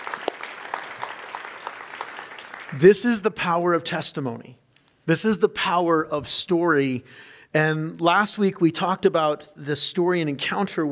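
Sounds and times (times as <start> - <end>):
crowd clapping: 0.0 - 3.1
speech: 2.7 - 10.9.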